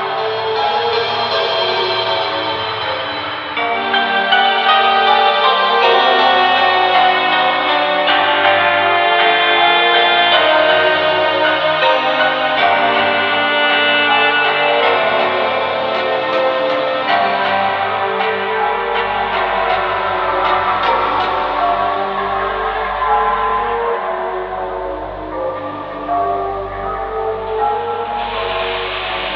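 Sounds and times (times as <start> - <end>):
music player: 0.0 - 29.3.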